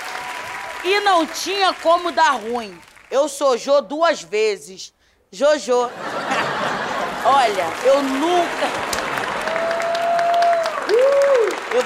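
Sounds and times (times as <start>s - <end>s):
audience clapping: 0.0s - 3.4s, 6.4s - 11.8s
speech: 0.8s - 6.5s, 7.2s - 9.0s
laughter: 5.9s - 9.8s.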